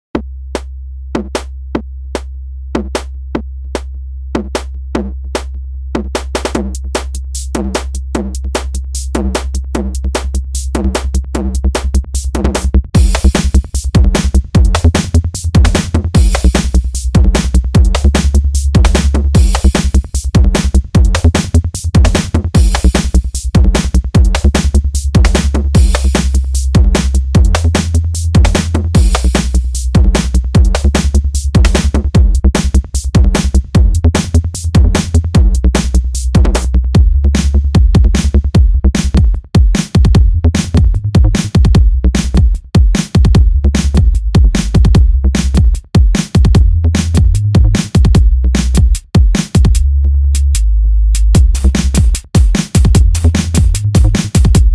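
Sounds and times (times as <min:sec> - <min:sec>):
psy music with bass: 0:00.1 - 0:42.6, 0:43.2 - 0:45.8, 0:46.4 - 0:49.0, 0:49.6 - 0:54.7.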